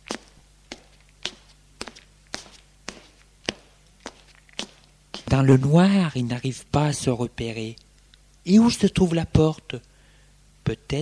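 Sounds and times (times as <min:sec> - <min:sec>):
footsteps walking: 0:00.0 - 0:05.5
faint low hum: 0:00.0 - 0:11.0
speech: 0:05.4 - 0:07.8, 0:08.4 - 0:09.9, 0:10.7 - 0:11.0.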